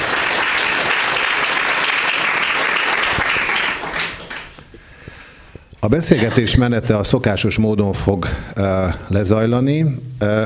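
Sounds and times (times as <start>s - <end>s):
audience applause: 0.0s - 4.7s
speech: 5.8s - 10.4s.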